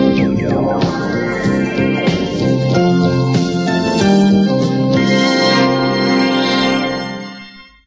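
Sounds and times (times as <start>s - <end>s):
jingle: 0.2s - 7.8s.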